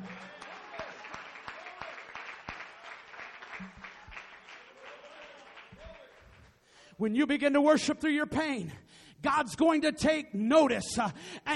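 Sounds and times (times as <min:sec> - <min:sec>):
audience clapping hands in praise: 0:00.0 - 0:06.6
speech: 0:07.0 - 0:11.5.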